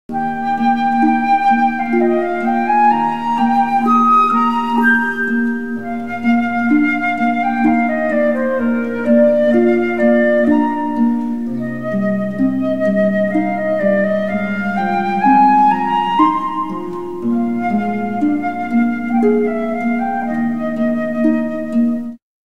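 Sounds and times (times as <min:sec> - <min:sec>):
flute: 0:00.1 - 0:22.2.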